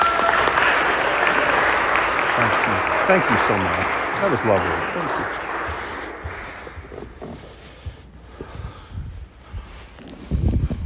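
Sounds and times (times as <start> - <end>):
audience applause welcoming a speaker: 0.0 - 7.2
speech: 3.1 - 5.1.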